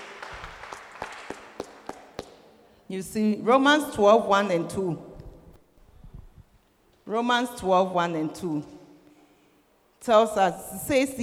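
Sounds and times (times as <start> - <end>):
audience applause: 0.0 - 2.2
speech: 2.9 - 5.1, 7.1 - 8.8, 10.0 - 11.2.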